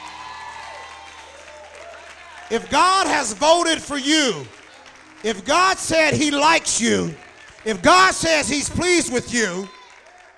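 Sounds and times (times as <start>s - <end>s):
audience clapping: 0.0s - 10.3s
speech: 2.5s - 4.6s, 5.2s - 9.8s.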